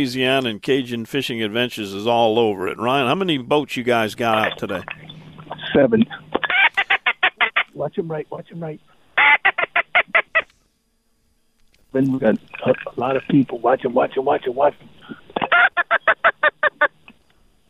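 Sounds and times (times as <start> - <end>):
speech: 0.0 - 5.1, 5.8 - 6.3, 7.8 - 9.0, 11.9 - 15.6
teal duck call blown in raspy quacks: 6.4 - 7.7, 9.2 - 10.5, 15.4 - 17.0.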